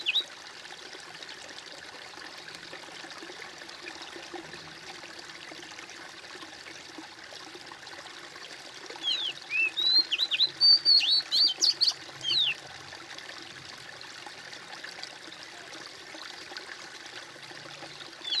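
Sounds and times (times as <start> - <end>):
bird singing high twisting whistled chirps: 0.0 - 0.3, 9.0 - 12.6.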